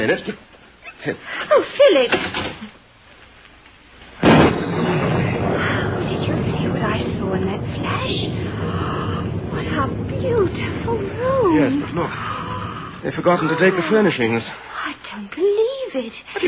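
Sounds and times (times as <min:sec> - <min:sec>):
speech: 0:00.0 - 0:02.8, 0:07.3 - 0:08.9, 0:09.7 - 0:12.3, 0:13.0 - 0:16.4
thunder during lightning storm: 0:04.2 - 0:14.5.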